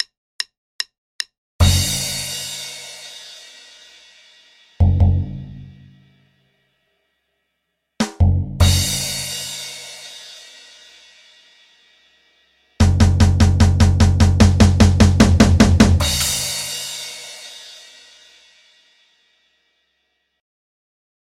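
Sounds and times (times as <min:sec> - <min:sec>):
drum beat: 0:01.6 - 0:02.4, 0:04.8 - 0:05.5, 0:08.0 - 0:09.4, 0:12.8 - 0:17.3.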